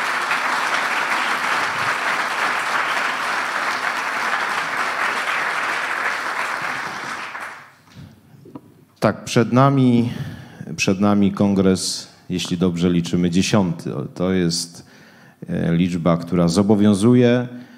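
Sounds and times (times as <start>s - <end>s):
applause from a large crowd: 0.0s - 7.8s
speech: 9.0s - 17.6s.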